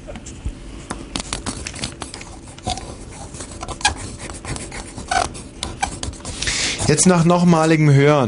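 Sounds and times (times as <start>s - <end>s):
pen or pencil scratching across paper while drawing: 1.2s - 7.7s
speech: 6.9s - 8.2s.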